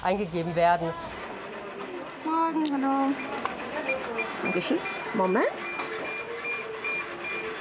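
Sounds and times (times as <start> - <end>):
speech: 0.0 - 1.2, 2.4 - 3.5, 4.4 - 5.8
check-in computer high-pitched electronic beeps: 3.9 - 7.5.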